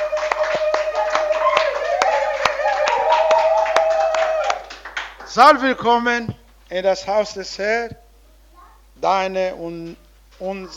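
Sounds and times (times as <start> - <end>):
audience applauding in welcome: 0.0 - 5.8
speech: 5.4 - 8.0, 9.0 - 10.7.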